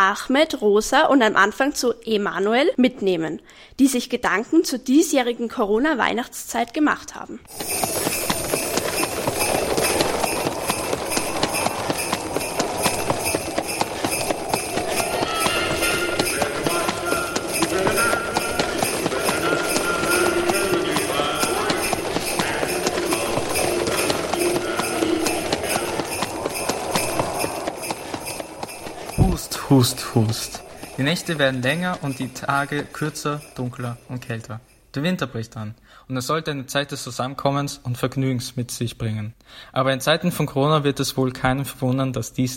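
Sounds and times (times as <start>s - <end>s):
speech: 0.0s - 8.6s, 29.7s - 42.5s
horse hooves clip-clopping on a horse-drawn winter sleigh ride: 7.5s - 34.5s
faint tinkling sleigh bells: 7.5s - 35.3s.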